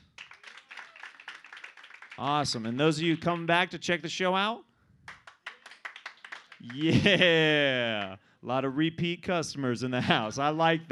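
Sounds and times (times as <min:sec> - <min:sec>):
crowd applauding: 0:00.0 - 0:03.5, 0:05.1 - 0:08.1
speech: 0:02.2 - 0:04.7, 0:06.6 - 0:10.9
laughter: 0:06.6 - 0:08.2, 0:10.0 - 0:10.4.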